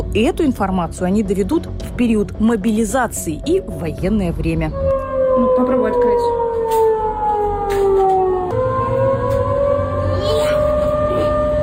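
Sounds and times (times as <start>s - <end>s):
speech: 0.1s - 4.8s
civil defense air raid siren wailing: 4.4s - 11.6s.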